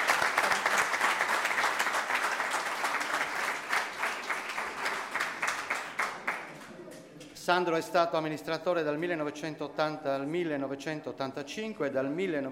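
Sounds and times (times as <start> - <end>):
audience applause: 0.0 - 6.8
speech: 7.5 - 12.5.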